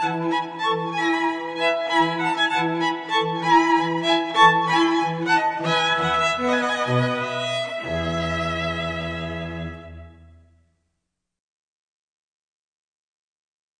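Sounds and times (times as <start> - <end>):
festive string ensemble: 0.0 - 10.6.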